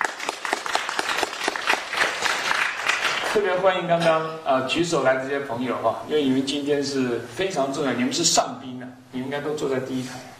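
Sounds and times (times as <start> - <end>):
audience applause: 0.0 - 3.4
speech: 3.4 - 10.3.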